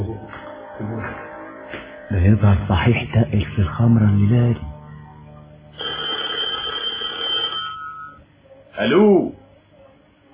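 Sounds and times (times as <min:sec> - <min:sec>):
faint hum: 0:00.0 - 0:10.3
speech: 0:02.1 - 0:04.7, 0:08.8 - 0:09.4
telephone ringing with a steady electric bell tone: 0:05.8 - 0:08.2.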